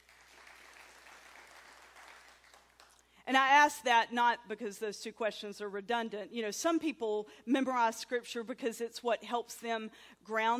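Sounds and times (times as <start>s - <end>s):
audience clapping: 0.0s - 3.1s
speech: 3.3s - 10.5s.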